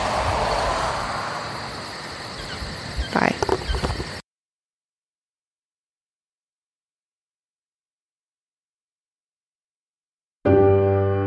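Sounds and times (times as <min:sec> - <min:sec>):
crickets chirping at night: 0:00.0 - 0:04.2.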